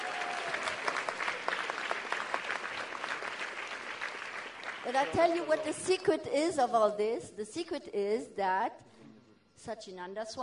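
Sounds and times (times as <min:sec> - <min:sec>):
audience applause: 0:00.0 - 0:05.7
speech: 0:04.9 - 0:08.9, 0:09.6 - 0:10.4.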